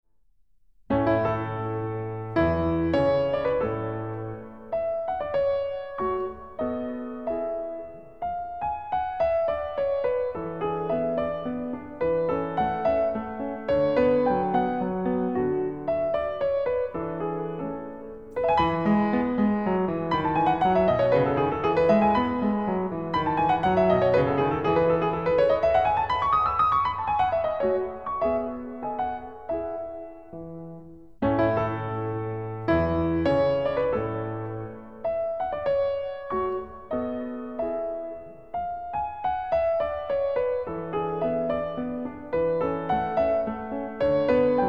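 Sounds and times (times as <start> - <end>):
piano sonata minuet and trio: 0.9 - 44.6.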